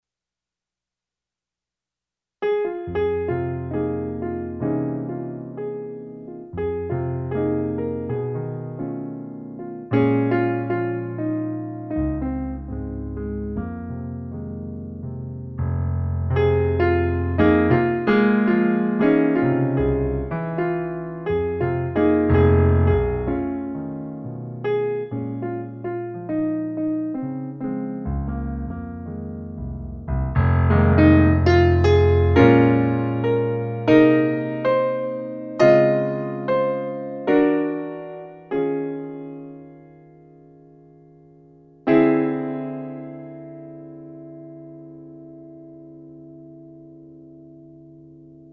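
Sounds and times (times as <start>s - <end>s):
blues in F minor: 2.5s - 39.6s.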